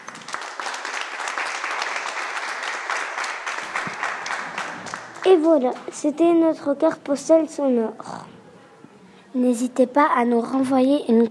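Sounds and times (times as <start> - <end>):
audience applause after a show: 0.0 - 5.7
speech: 5.3 - 8.1, 9.3 - 11.2.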